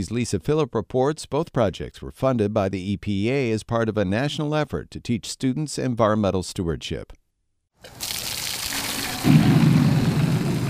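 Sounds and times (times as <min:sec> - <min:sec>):
speech: 0:00.0 - 0:07.2, 0:07.8 - 0:08.2, 0:09.2 - 0:09.5
water gushing out of a rainwater pump: 0:07.8 - 0:10.6.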